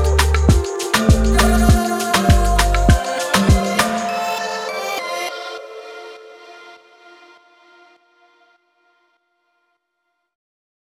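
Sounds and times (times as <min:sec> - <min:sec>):
relaxed music theme: 0:00.0 - 0:06.8.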